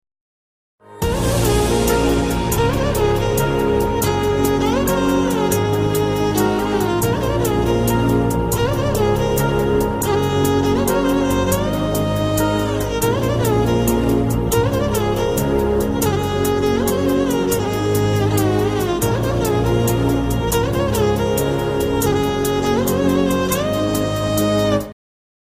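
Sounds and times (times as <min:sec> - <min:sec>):
background music: 0:00.8 - 0:25.0.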